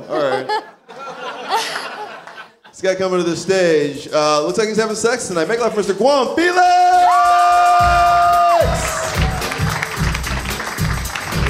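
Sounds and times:
laughter: 0.0 - 2.8
speech: 2.8 - 6.7
audience applause: 7.5 - 11.4.

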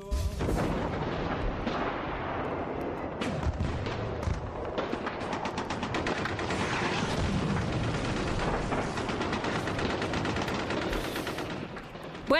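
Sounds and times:
battlefield explosions: 0.1 - 12.3
battlefield gunfire: 0.3 - 12.3.

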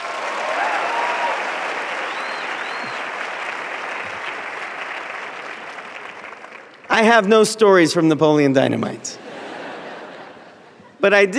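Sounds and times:
round of applause: 0.0 - 7.2
speech: 7.0 - 9.2, 11.1 - 11.3
laughter: 9.0 - 11.3.

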